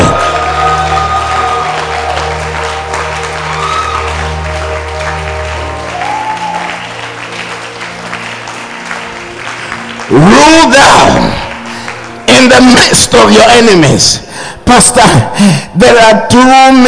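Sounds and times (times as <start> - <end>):
church audience clapping: 0.0 - 13.5
speech: 12.4 - 16.8.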